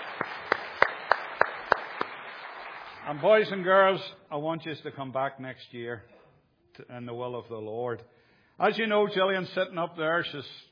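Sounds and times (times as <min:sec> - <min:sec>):
audience clapping in rhythm at an evening gathering: 0:00.0 - 0:03.8
faint noise: 0:00.0 - 0:10.7
speech: 0:03.1 - 0:06.2, 0:06.8 - 0:10.7.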